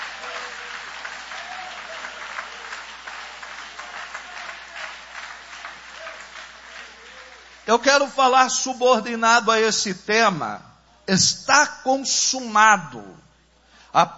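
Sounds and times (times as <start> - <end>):
audience applauding: 0.0 - 7.9
speech: 7.7 - 13.2, 14.0 - 14.1.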